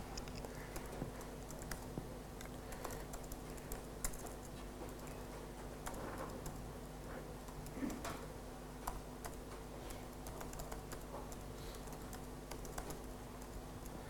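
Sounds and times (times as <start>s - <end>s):
typing on a computer keyboard: 0.2s - 13.9s.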